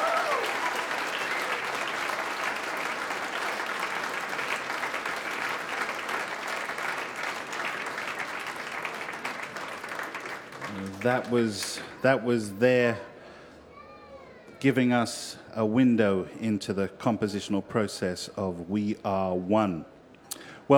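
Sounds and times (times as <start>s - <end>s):
audience applause: 0.0s - 12.1s
speech: 11.0s - 13.1s, 14.6s - 19.9s.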